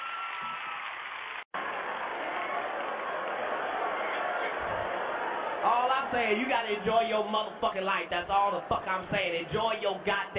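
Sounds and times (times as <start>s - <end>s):
audience applause: 0.0s - 6.8s
speech: 5.6s - 10.3s.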